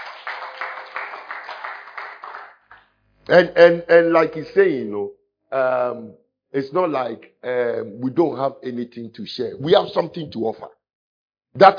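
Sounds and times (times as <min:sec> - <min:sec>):
audience clapping in rhythm: 0:00.0 - 0:02.8
speech: 0:03.3 - 0:10.8, 0:11.6 - 0:11.7.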